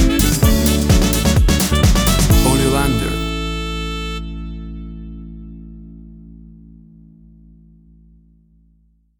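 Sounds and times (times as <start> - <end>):
tight funky house music groove: 0.0 - 3.3.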